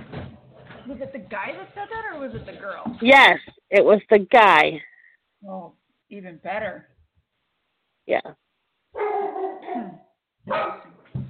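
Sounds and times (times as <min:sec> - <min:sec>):
speech: 0:00.9 - 0:06.9, 0:08.0 - 0:08.4, 0:09.7 - 0:10.8
dogs barking: 0:09.0 - 0:09.9, 0:10.5 - 0:11.0.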